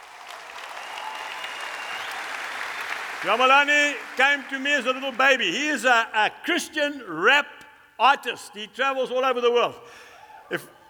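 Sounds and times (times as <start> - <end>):
audience applause: 0.0 - 5.4
speech: 3.2 - 10.8.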